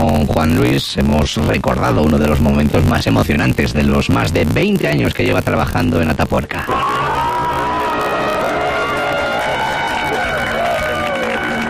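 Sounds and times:
speech: 0.2 - 7.2
archival recording of crowd applauding: 6.6 - 11.6.

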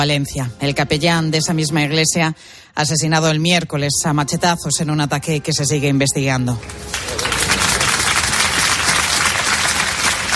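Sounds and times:
speech: 0.0 - 7.6
applause from a large crowd outside a funeral: 6.6 - 10.3.

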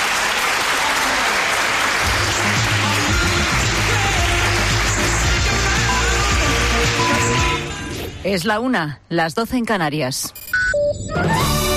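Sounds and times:
students applauding: 0.0 - 7.6
speech: 8.3 - 11.6.

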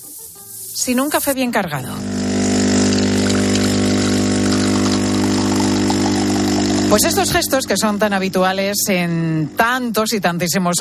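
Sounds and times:
speech: 0.8 - 2.2, 6.9 - 10.7
water running from a tap: 2.2 - 7.5.

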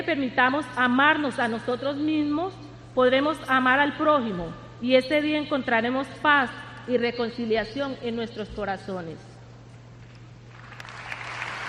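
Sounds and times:
speech: 0.0 - 9.3
crowd applause at a papal event in Colombia: 10.5 - 11.6.

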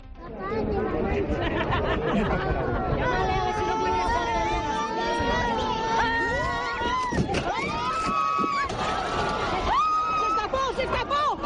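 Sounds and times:
laughter: 1.1 - 3.9, 8.6 - 11.4
crowd screaming in panic: 3.0 - 11.4.

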